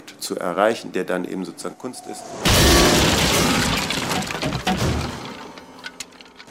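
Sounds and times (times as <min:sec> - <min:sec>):
speech: 0:00.2 - 0:03.5
grand piano being smashed in an instrument-destruction artwork: 0:02.5 - 0:05.8
wood cracking: 0:02.5 - 0:06.4.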